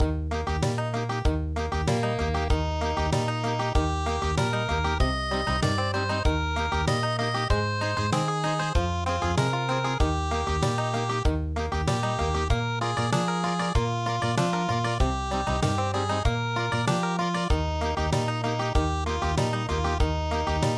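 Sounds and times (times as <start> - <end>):
country music: 0.0 - 20.7.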